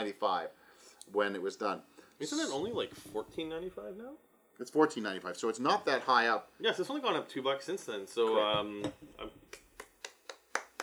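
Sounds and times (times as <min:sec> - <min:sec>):
speech: 0:00.0 - 0:09.6
hand claps as applause at a wine tasting: 0:09.2 - 0:10.8.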